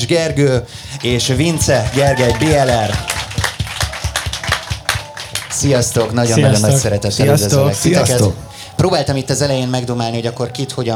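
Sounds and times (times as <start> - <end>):
speech: 0.0 - 3.2, 5.6 - 10.9
audience clapping at a Strand Festival fan meeting: 0.0 - 10.9
laughter: 0.0 - 10.9.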